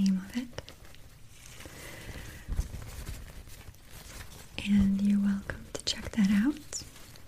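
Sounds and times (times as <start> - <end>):
paper being handled: 0.3 - 7.2
speech: 4.7 - 5.0.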